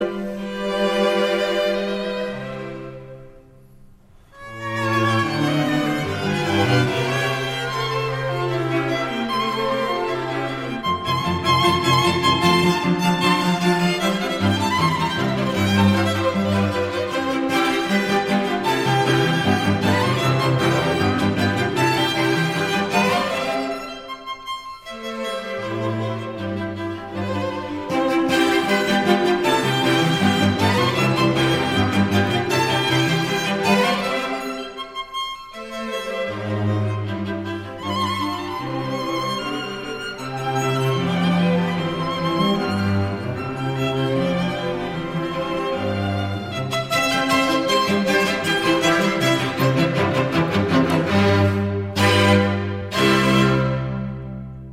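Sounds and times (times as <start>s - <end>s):
string quintet: 0.0s - 54.7s.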